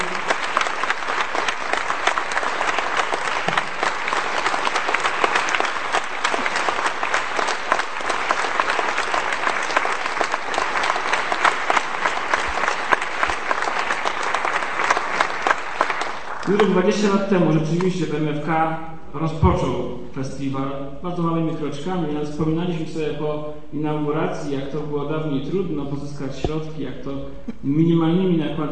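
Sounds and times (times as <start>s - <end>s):
crowd applause: 0.0s - 17.9s
speech: 16.8s - 28.6s.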